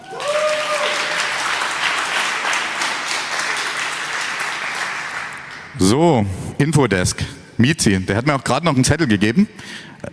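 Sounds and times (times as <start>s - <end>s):
audience applause: 0.0s - 5.8s
speech: 5.8s - 10.0s.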